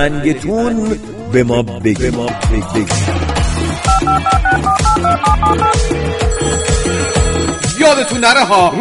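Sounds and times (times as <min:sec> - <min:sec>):
speech: 0:00.0 - 0:07.2, 0:07.8 - 0:08.8
telephone keypad tones dialing a number: 0:03.9 - 0:07.5
telephone ringing tone: 0:03.9 - 0:08.1.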